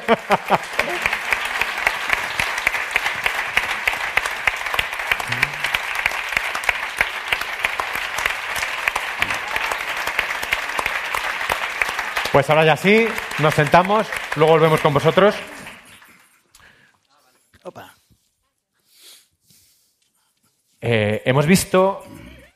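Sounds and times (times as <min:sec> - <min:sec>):
laughter: 0:00.0 - 0:01.4, 0:05.3 - 0:05.7, 0:14.4 - 0:16.6
audience applause: 0:00.0 - 0:16.4
speech: 0:00.1 - 0:01.0, 0:12.4 - 0:15.5, 0:21.3 - 0:22.1.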